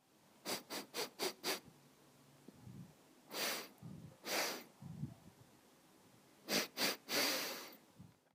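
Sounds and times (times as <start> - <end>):
sniffing: 0.4 - 1.7, 3.3 - 4.7, 6.4 - 7.8.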